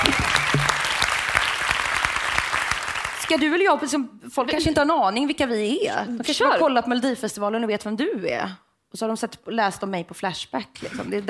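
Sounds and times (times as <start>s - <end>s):
crowd applauding: 0.0s - 3.4s
speech: 3.3s - 11.2s.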